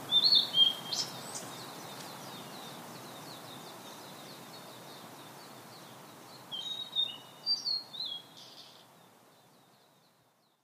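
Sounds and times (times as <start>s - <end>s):
Blue-and-white flycatcher whistled song: 0.1s - 1.4s, 6.5s - 8.8s.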